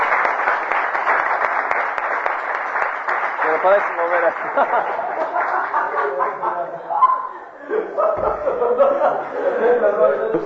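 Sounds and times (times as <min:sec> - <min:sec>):
applause: 0:00.0 - 0:06.4
speech: 0:03.6 - 0:07.0, 0:07.7 - 0:10.4
laughter: 0:04.2 - 0:10.4.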